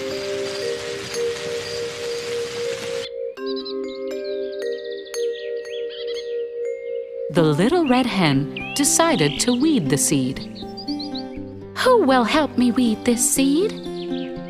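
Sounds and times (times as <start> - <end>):
rain falling in bright sunshine: 0.0 - 3.1
birds chirping: 0.0 - 14.4
sustained musical tones: 0.0 - 14.4
speech: 7.3 - 10.7, 11.8 - 13.9.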